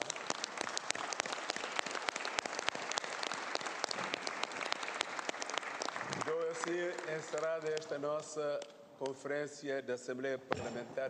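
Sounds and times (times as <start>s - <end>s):
audience applause: 0.0s - 8.7s
speech: 6.6s - 11.0s.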